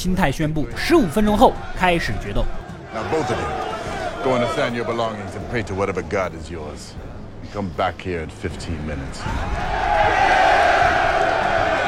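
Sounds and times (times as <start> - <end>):
speech: 0.0 - 10.5
large crowd of prisoners cheering: 1.3 - 5.6, 9.2 - 11.8.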